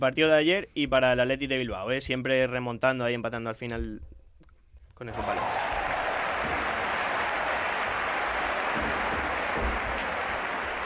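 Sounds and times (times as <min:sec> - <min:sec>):
speech: 0:00.0 - 0:04.2, 0:05.0 - 0:05.7
crowd applauding: 0:05.1 - 0:10.8.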